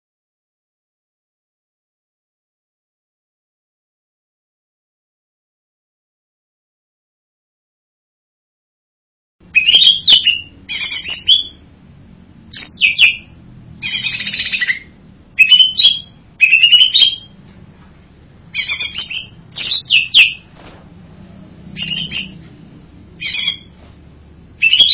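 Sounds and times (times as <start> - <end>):
bird buzzy whistled song: 9.5 - 11.6, 12.5 - 17.4, 18.5 - 20.5, 21.7 - 22.5, 23.2 - 23.8, 24.6 - 24.9.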